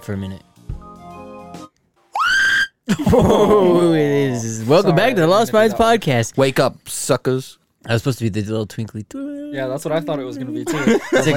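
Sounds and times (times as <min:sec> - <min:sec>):
speech: 0:00.0 - 0:00.5, 0:03.0 - 0:11.3
woman screaming in terror: 0:02.1 - 0:02.8
laughter: 0:02.9 - 0:05.2, 0:10.1 - 0:11.3.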